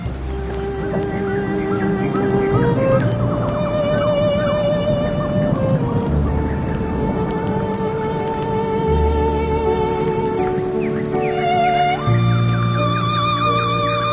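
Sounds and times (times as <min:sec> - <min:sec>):
rain: 0:00.0 - 0:14.1
sea waves: 0:00.0 - 0:14.1
water: 0:00.0 - 0:14.1.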